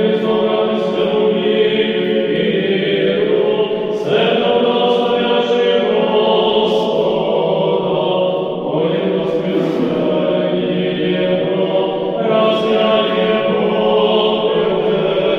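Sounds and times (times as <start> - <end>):
church choir singing: 0.0 - 15.3.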